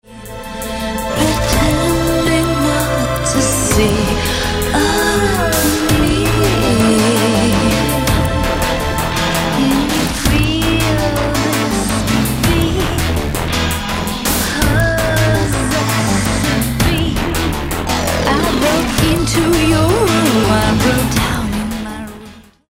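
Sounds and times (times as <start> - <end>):
distorted sound: 0.0 - 22.1.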